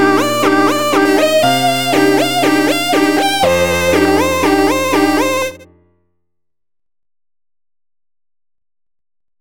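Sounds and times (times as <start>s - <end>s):
background music: 0.0s - 5.7s.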